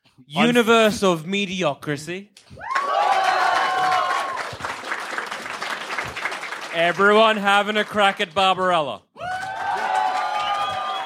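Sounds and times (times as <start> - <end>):
speech: 0.2 - 2.7, 6.8 - 9.1
audience applause and cheering: 2.7 - 8.4, 9.2 - 11.0.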